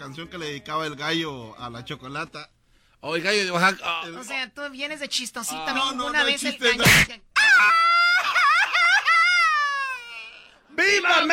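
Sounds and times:
speech: 0:00.0 - 0:07.9, 0:10.9 - 0:11.3
man crying and wailing: 0:06.8 - 0:11.3.

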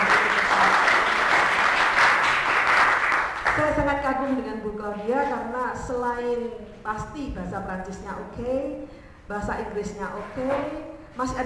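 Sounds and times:
audience applause for a speaker at a talk on Chinese-Indonesian culture: 0:00.0 - 0:03.6
speech: 0:04.3 - 0:11.4.

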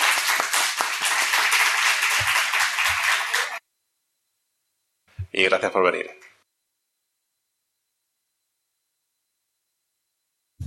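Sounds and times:
audience applause for three guests at a talk event: 0:00.0 - 0:03.6
speech: 0:05.4 - 0:06.2.

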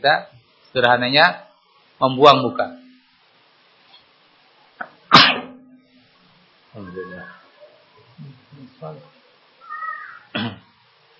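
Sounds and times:
speech: 0:00.0 - 0:02.8, 0:08.8 - 0:09.1
person sneezing: 0:05.1 - 0:05.5, 0:10.3 - 0:10.7.

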